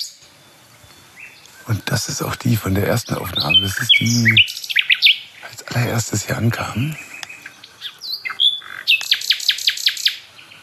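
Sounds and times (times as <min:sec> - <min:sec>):
nightingale singing at a hotspot: 0:00.0 - 0:10.6
speech: 0:01.7 - 0:04.6, 0:05.7 - 0:07.1.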